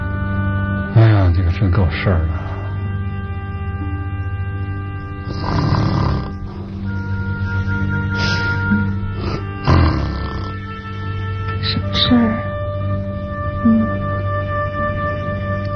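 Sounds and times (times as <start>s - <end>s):
low droning hum: 0.0s - 15.7s
speech: 1.0s - 2.4s
person snoring: 5.3s - 6.5s, 8.1s - 10.6s.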